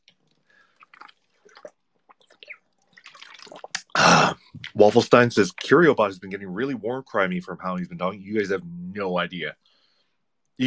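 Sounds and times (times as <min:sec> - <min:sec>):
person drinking water: 0:00.1 - 0:04.8
speech: 0:04.8 - 0:09.6.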